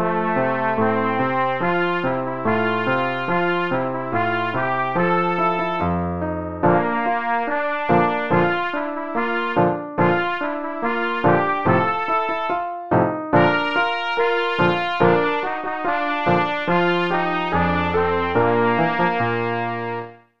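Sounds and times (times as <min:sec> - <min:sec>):
trumpet playing: 0:00.0 - 0:20.2.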